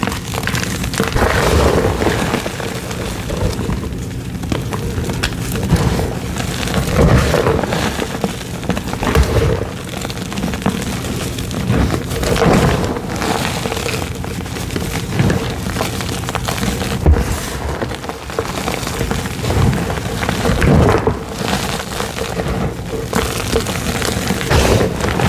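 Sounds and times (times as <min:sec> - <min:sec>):
gym chalk rainbow cylinders crushed: 0:00.0 - 0:25.2
low thuds and sharper cracks: 0:00.0 - 0:25.2.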